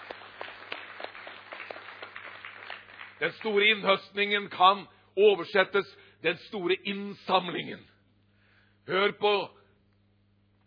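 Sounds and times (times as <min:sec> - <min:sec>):
applause: 0:00.0 - 0:04.6
speech: 0:03.2 - 0:07.9, 0:08.8 - 0:09.6.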